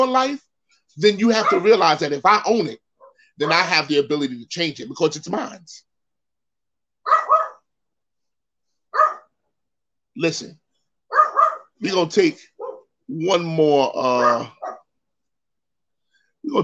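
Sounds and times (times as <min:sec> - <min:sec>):
speech: 0:00.0 - 0:02.8, 0:03.4 - 0:05.9, 0:10.2 - 0:10.6, 0:11.8 - 0:12.5, 0:13.1 - 0:14.8
small dog barking: 0:01.4 - 0:01.8, 0:07.1 - 0:07.6, 0:09.0 - 0:09.3, 0:11.1 - 0:11.7, 0:12.6 - 0:12.9, 0:14.2 - 0:14.9.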